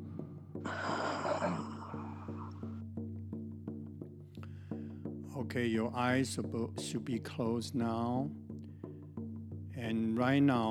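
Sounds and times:
long soft deep breath during a guided chakra meditation: 0.0 - 2.7, 4.4 - 5.0
speech: 5.4 - 8.4, 9.8 - 10.6.

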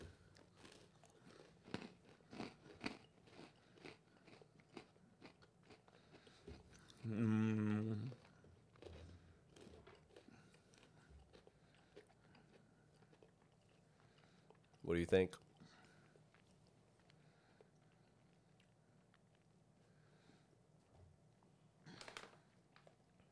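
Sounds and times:
biting and chewing durian fruit: 0.0 - 20.1
person humming mmm: 6.9 - 8.3
speech: 7.1 - 7.4, 14.9 - 15.5.

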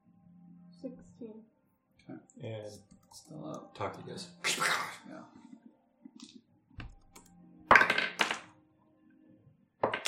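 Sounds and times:
speech: 2.1 - 5.3
dice rolled onto a table during a tabletop role-playing game: 7.7 - 8.5, 9.8 - 10.0.

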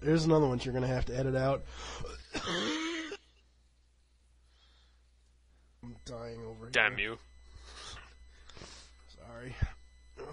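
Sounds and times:
speech: 0.0 - 2.8, 6.0 - 7.3, 9.3 - 10.3
painful harsh cough: 2.0 - 3.4.

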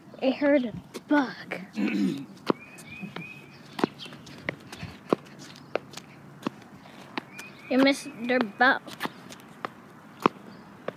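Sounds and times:
speech: 0.2 - 2.5, 7.7 - 9.1
footsteps of a person walking: 2.4 - 10.9.

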